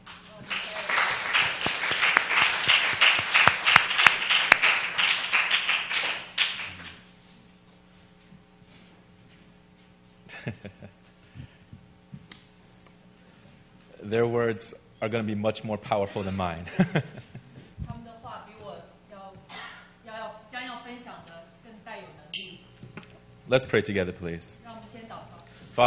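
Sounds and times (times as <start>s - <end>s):
audience clapping: 0.0s - 7.1s
laughter: 10.3s - 11.0s, 16.6s - 17.7s
speech: 14.1s - 17.2s, 23.5s - 24.7s.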